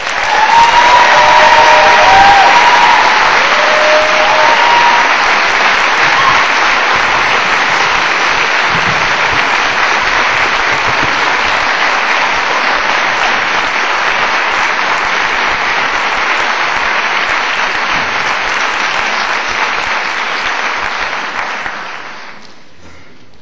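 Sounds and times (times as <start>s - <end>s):
whistles and cheers: 0.0s - 7.0s
large audience applauding a speaker's introduction: 0.0s - 22.8s.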